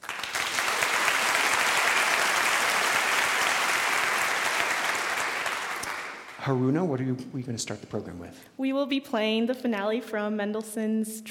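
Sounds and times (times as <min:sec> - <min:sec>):
audience applause welcoming a young piano trio onto the stage of Harris Hall: 0:00.0 - 0:07.0
speech: 0:06.5 - 0:11.2.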